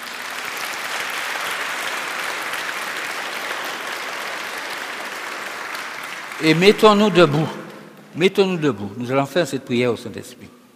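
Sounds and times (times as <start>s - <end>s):
audience applause: 0.0s - 7.8s
speech: 6.4s - 7.6s, 8.2s - 10.6s.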